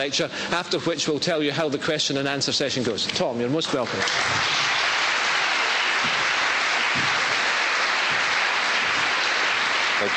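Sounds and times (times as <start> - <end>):
speech: 0.0 - 4.8
audience applause: 3.7 - 10.1.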